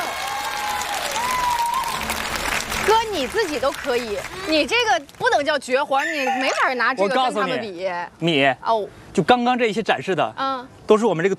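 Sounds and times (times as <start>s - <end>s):
audience applause at a stunt show: 0.0s - 5.2s
speech: 2.9s - 11.3s.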